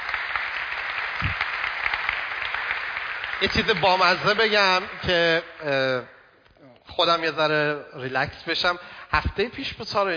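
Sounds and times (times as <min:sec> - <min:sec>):
church congregation applauding welcoming two guests: 0:00.0 - 0:06.4
speech: 0:03.4 - 0:06.2, 0:07.0 - 0:10.1.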